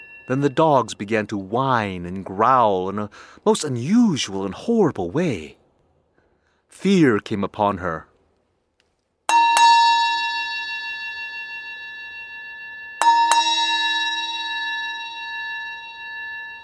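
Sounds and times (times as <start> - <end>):
bell ringing: 0.0 - 1.4, 9.3 - 16.6
speech: 0.3 - 5.6, 6.7 - 8.1.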